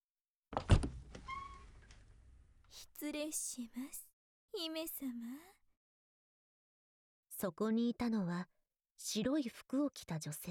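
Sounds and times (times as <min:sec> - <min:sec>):
room entrance door opened with a soft dull thunk: 0:00.6 - 0:02.0
speech: 0:03.0 - 0:05.6, 0:07.4 - 0:10.5.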